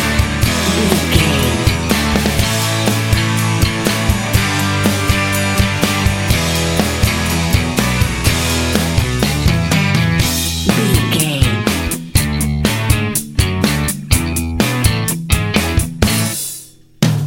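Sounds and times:
indie pop percussion: 0.0s - 17.2s.

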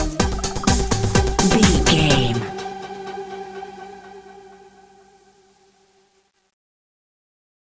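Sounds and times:
modern dance music: 0.2s - 2.6s.

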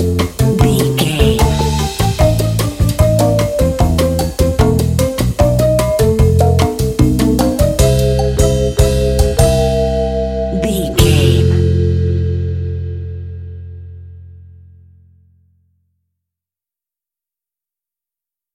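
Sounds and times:
kitschy elevator comedy lounge music: 0.0s - 13.0s.

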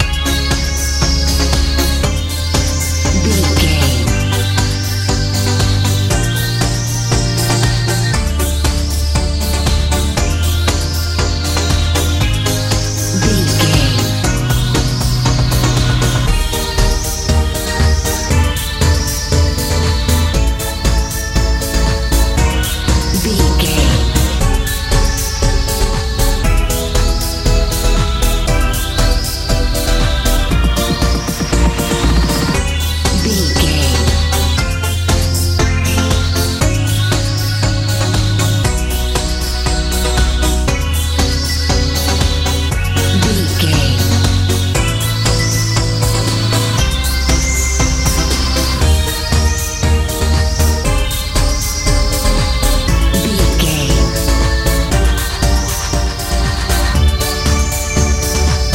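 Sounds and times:
colorful house music: 0.0s - 58.7s.

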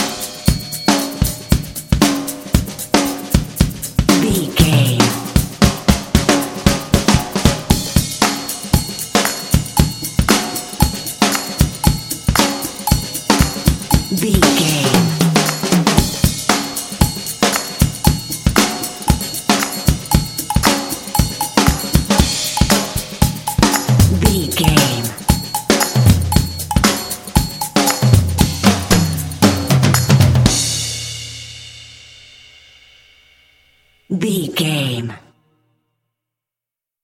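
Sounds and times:
hip funky drums: 0.0s - 32.6s
percussion: 0.0s - 35.2s
claps: 9.2s - 9.5s, 15.4s - 15.7s, 17.5s - 17.8s.

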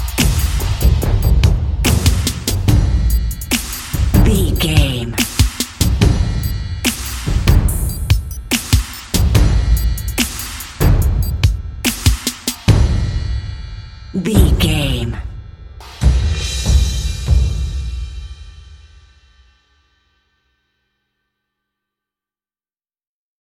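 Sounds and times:
dramatic decision countdown percussion: 0.0s - 18.6s.

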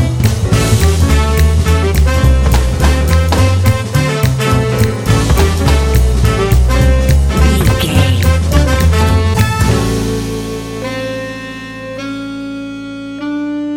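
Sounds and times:
hipster jazz advertising jingle: 0.1s - 13.6s.

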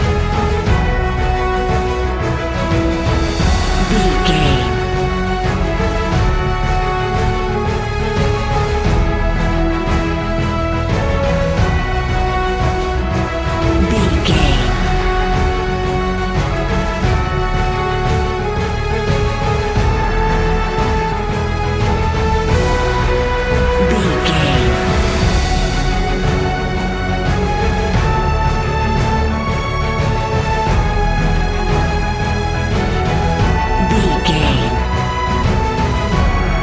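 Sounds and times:
epic cinematic music loop: 0.0s - 36.6s.

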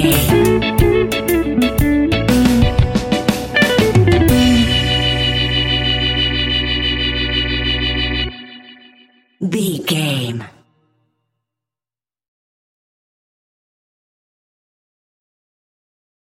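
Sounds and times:
reggae music: 0.0s - 9.2s.

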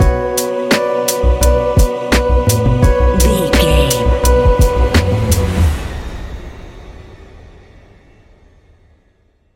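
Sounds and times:
relaxed chill music stinger: 0.0s - 4.8s.

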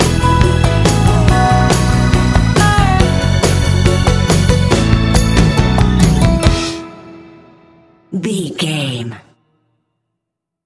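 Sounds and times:
dobro playing hillbilly country music: 0.0s - 6.8s.

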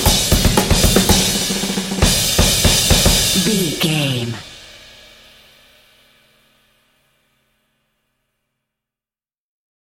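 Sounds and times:
hip funky drum beat: 0.0s - 4.5s
percussion: 0.0s - 5.3s.

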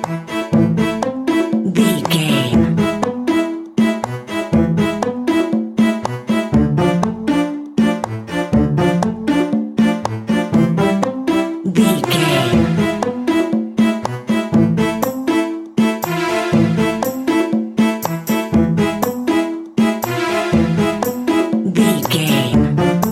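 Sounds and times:
groovy powerful exotic Middle East world music: 0.0s - 23.1s.

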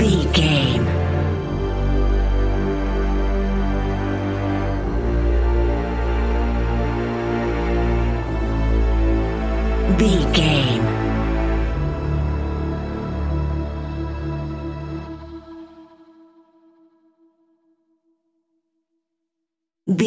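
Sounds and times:
tropical luxury underscore music: 0.0s - 15.8s.

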